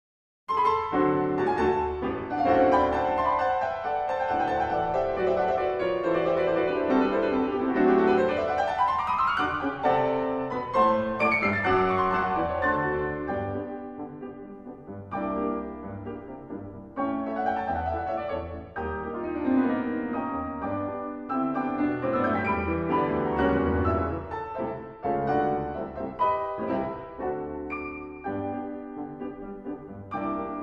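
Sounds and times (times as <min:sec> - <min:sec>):
concert tango on two pianos: 0:00.5 - 0:30.6.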